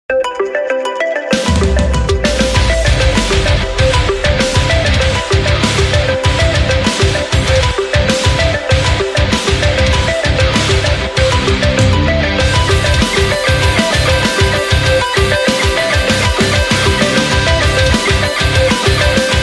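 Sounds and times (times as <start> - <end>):
ringtone metal remix: 0.1 - 19.4.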